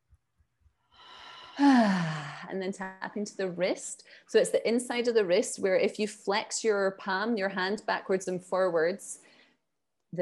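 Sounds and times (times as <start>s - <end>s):
deep breath in during a calming breathing exercise: 0.9s - 2.5s
speech: 2.5s - 9.2s.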